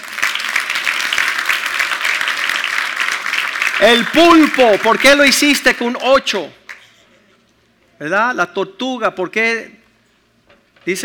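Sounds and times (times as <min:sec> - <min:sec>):
audience applause: 0:00.0 - 0:05.5
speech: 0:03.8 - 0:06.6, 0:08.0 - 0:09.8, 0:10.8 - 0:11.0.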